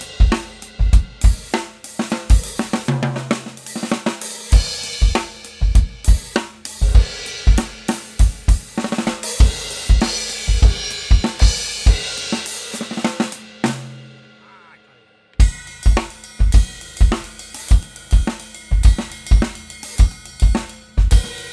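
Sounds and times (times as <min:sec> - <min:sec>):
processed bass drum: 0:00.0 - 0:01.5, 0:04.6 - 0:12.2, 0:15.4 - 0:21.5
processed overhead drum mics: 0:00.0 - 0:14.4, 0:15.4 - 0:21.5.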